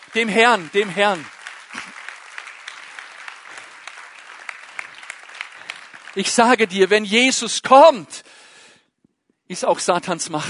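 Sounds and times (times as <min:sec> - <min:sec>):
audience applause: 0:00.0 - 0:06.9
speech: 0:00.1 - 0:01.4, 0:06.2 - 0:08.4, 0:09.5 - 0:10.4.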